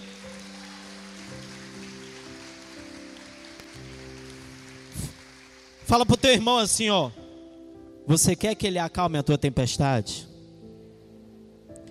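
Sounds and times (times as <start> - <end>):
audience applauding: 0.0 - 6.8
speech: 5.9 - 7.2, 8.1 - 10.3.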